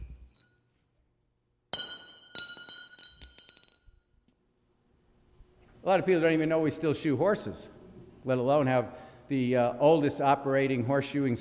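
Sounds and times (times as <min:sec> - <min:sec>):
welded metal bar dropping and bouncing with a ring: 0:01.7 - 0:04.1
speech: 0:05.8 - 0:11.4.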